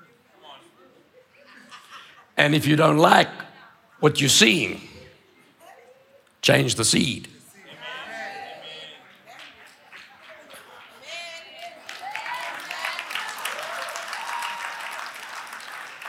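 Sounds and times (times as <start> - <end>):
speech: 2.4 - 3.4, 4.0 - 4.9, 6.4 - 7.4
lazy audience clapping: 9.0 - 16.0.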